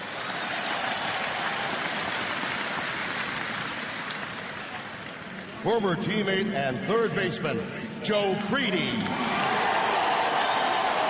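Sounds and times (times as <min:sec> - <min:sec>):
White Sox stadium crowd applauding: 0:00.0 - 0:05.6, 0:09.0 - 0:11.0
speech: 0:05.6 - 0:09.8.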